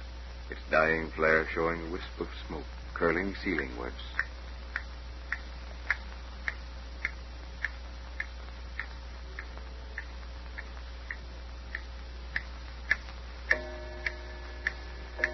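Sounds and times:
speech: 0:00.5 - 0:04.2
old clock ticking loudly: 0:03.4 - 0:15.3.

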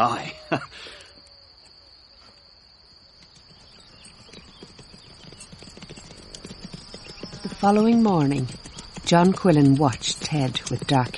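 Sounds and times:
speech: 0:00.0 - 0:01.0, 0:07.6 - 0:11.1
high insect chirring: 0:00.0 - 0:11.1
horse hooves walking and trotting: 0:02.3 - 0:11.1.

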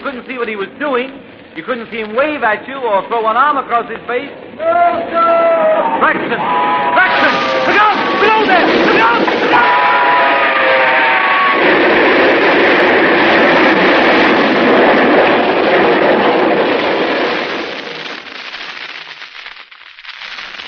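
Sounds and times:
speech: 0:00.1 - 0:09.9
short tonal train whistle: 0:04.8 - 0:08.3, 0:09.5 - 0:11.8
train locomotive passing on tracks: 0:05.1 - 0:16.8.

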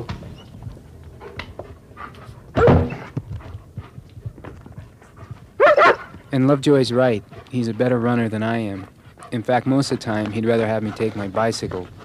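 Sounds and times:
German Shepherd panting: 0:00.2 - 0:12.0
German Shepherd barking: 0:02.6 - 0:03.0, 0:05.6 - 0:06.1
speech: 0:06.3 - 0:12.0.

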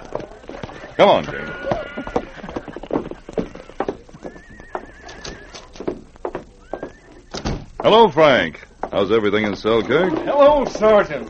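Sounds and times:
hooves clip-clopping: 0:00.0 - 0:11.2
horse whinnying: 0:00.3 - 0:06.0, 0:06.6 - 0:07.4
speech: 0:01.0 - 0:02.2, 0:07.8 - 0:11.2.

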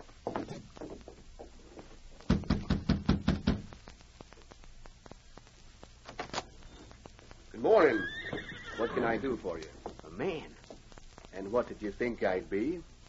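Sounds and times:
shuffling: 0:00.0 - 0:02.3, 0:03.7 - 0:13.0
knocking on a door: 0:02.3 - 0:03.7
speech: 0:09.0 - 0:10.6, 0:11.4 - 0:12.9.

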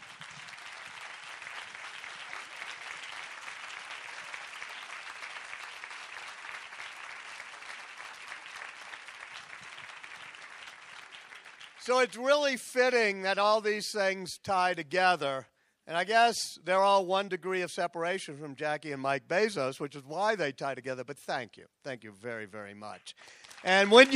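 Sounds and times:
audience applause: 0:00.0 - 0:12.1, 0:23.1 - 0:24.1
speech: 0:11.9 - 0:24.1.

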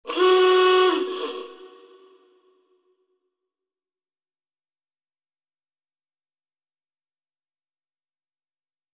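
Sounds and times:
klaxon: 0:00.0 - 0:02.2.

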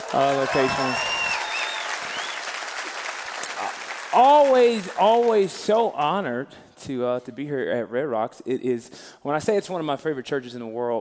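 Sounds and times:
large crowd whooping and cheering: 0:00.0 - 0:03.8
large crowd clapping: 0:00.0 - 0:05.8
speech: 0:00.1 - 0:01.2, 0:04.1 - 0:10.9
high whistles: 0:00.4 - 0:02.5.

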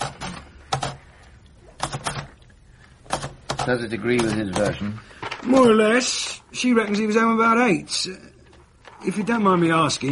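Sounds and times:
typing on a keyboard or typewriter: 0:00.0 - 0:01.0, 0:01.8 - 0:02.4, 0:03.0 - 0:04.9
speech: 0:03.6 - 0:08.3, 0:09.0 - 0:10.1.

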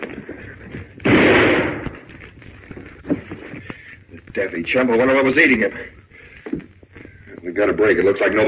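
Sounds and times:
gunshot in a film scene: 0:01.0 - 0:02.1
speech: 0:04.3 - 0:06.0, 0:07.5 - 0:08.4.

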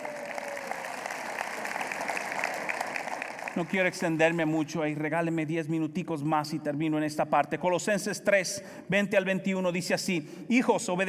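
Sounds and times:
audience applause: 0:00.0 - 0:04.6
speech: 0:03.6 - 0:11.0.

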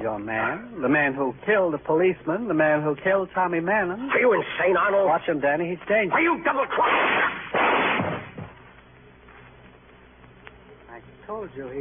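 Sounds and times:
speech: 0:00.0 - 0:07.4, 0:11.4 - 0:11.7
gunshot in a radio drama: 0:06.7 - 0:08.6.

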